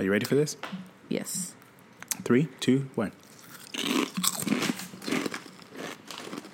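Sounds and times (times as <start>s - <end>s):
speech: 0.0s - 1.6s, 2.2s - 3.3s
chewing: 3.2s - 6.5s
crunchy bites into sour cream and onion flavoured snack chips: 3.2s - 6.5s.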